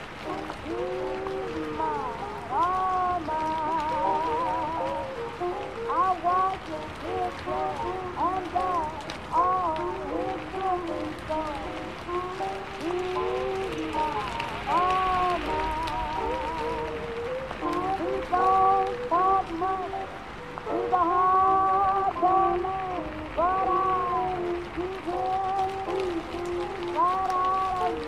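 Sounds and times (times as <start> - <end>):
oldies song playing in another room: 0.0 - 28.0
rain pattering: 0.0 - 28.0.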